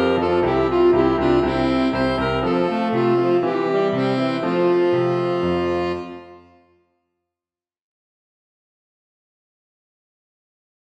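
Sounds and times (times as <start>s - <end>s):
piano playing an allemande: 0.0s - 6.7s
alto saxophone playing an allemande: 0.0s - 6.8s.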